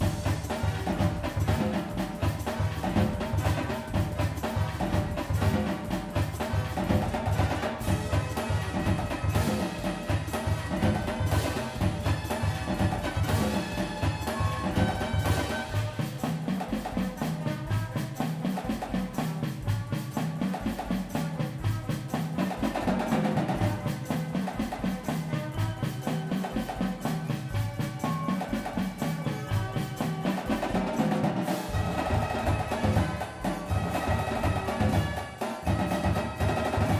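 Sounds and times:
full drumline: 0.0 - 36.9
music: 0.0 - 36.9.

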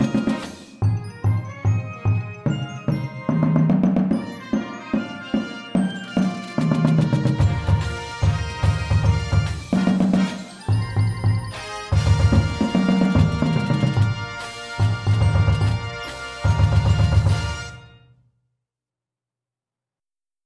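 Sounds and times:
drumline drumming: 0.0 - 0.8, 2.1 - 17.8
bass with music: 7.1 - 17.8.

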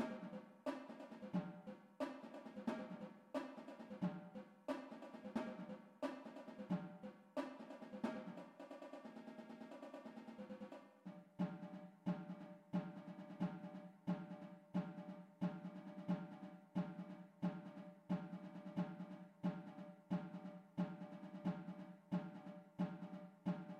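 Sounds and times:
drumline playing: 0.0 - 1.4
tenor drums: 0.0 - 23.7.

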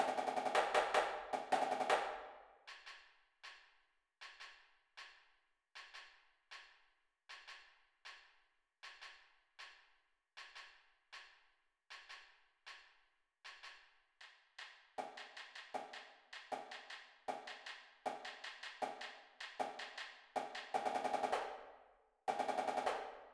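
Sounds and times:
drumline snare drums: 0.0 - 2.3, 16.5 - 21.7, 22.3 - 23.2.

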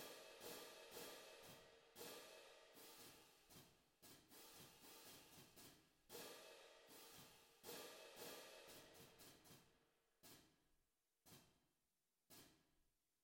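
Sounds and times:
cadence cymbals: 0.0 - 9.6.

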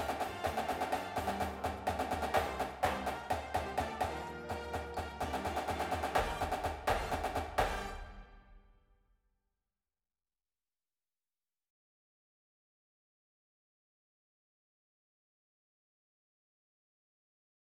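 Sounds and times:
snare drum: 0.0 - 8.6
music: 0.0 - 9.0.

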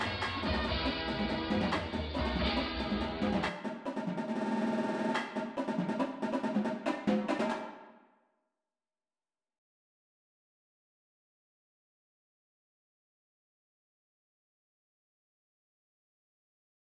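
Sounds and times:
tenors singing: 0.0 - 3.5
drumline playing: 0.0 - 7.8.

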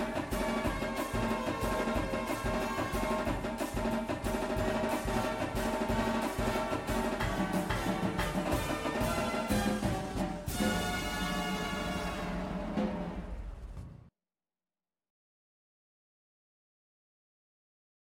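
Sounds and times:
music: 0.0 - 14.1
tenor drums: 0.0 - 14.1.

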